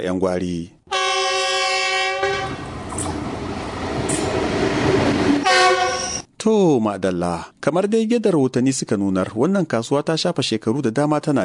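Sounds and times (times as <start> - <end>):
speech: 0.0 - 0.8, 6.4 - 11.4
train horn: 0.9 - 2.7, 5.4 - 6.2
passing rail cars rumbling: 1.1 - 6.3.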